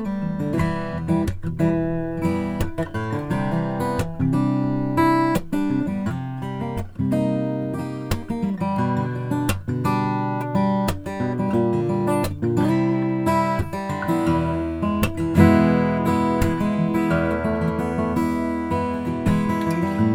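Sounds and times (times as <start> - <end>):
Brazilian rosewood guitar: 0.0 - 20.1.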